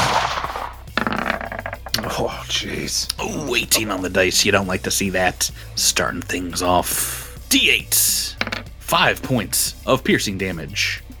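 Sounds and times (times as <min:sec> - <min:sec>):
rifle shot: 0:00.0 - 0:00.8
speech: 0:02.2 - 0:11.1.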